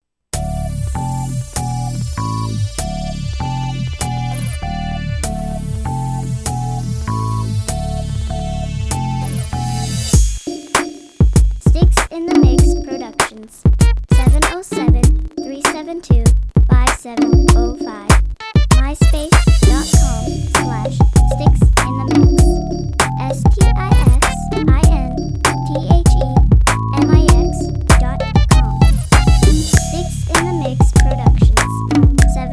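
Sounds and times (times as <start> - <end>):
music beat: 0.4 - 32.5.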